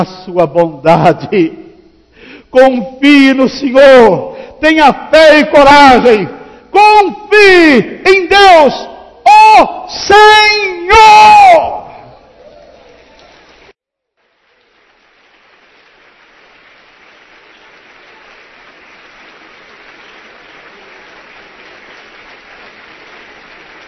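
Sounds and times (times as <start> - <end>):
speech: 0.0 - 1.6, 2.5 - 11.9
audience applauding: 12.4 - 13.7, 14.3 - 23.8.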